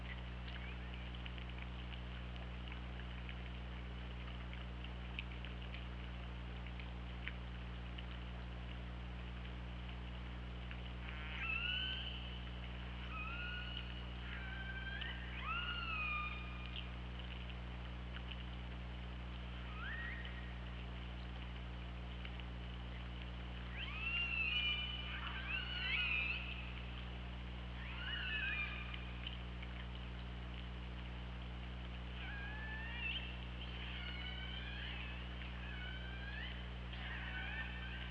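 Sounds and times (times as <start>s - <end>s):
low hydrophone hum: 0.0s - 38.1s
killer whale calls: 11.0s - 12.3s, 13.0s - 16.7s, 19.6s - 20.5s, 23.7s - 26.8s, 27.8s - 29.2s, 32.2s - 38.1s.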